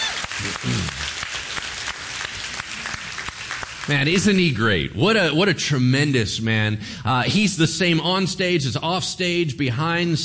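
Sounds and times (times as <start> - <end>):
voiced cheer: 0.0 - 1.1
audience applause: 0.0 - 4.3
speech: 0.4 - 1.1, 3.9 - 10.2.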